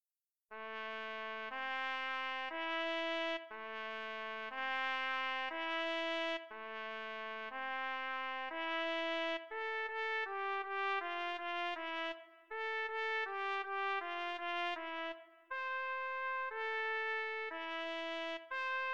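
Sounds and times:
solo trumpet: 0:00.5 - 0:18.9.

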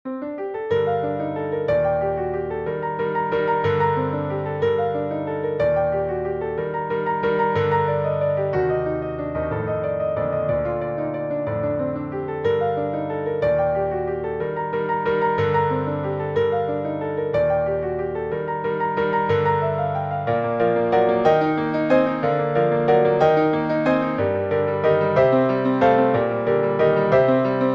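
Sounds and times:
prelude in G minor: 0:00.1 - 0:27.7.

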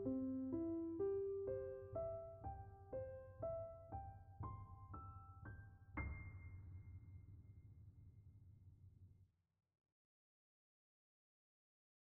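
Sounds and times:
piano lullaby in C major: 0:00.0 - 0:07.4.

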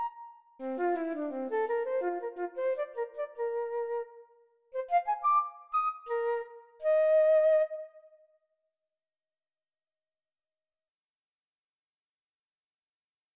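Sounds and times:
flute piece: 0:00.0 - 0:08.3.

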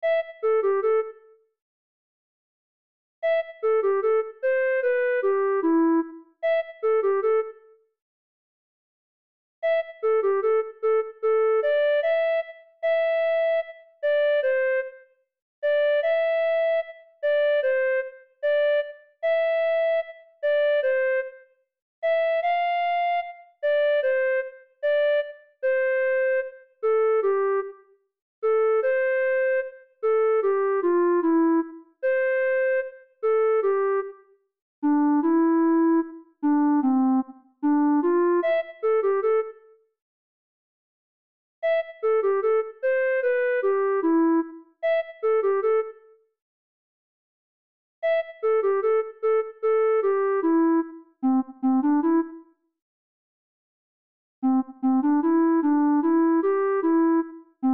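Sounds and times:
flute piece: 0:00.0 - 0:01.2, 0:03.2 - 0:07.6, 0:09.6 - 0:15.0, 0:15.6 - 0:21.4, 0:22.0 - 0:27.8, 0:28.4 - 0:34.2, 0:34.8 - 0:39.6, 0:41.6 - 0:46.0, 0:48.0 - 0:52.5, 0:54.5 - 0:57.7.

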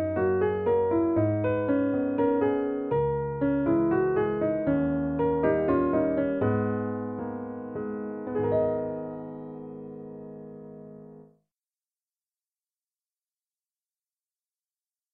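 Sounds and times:
waltz music: 0:00.0 - 0:11.2.

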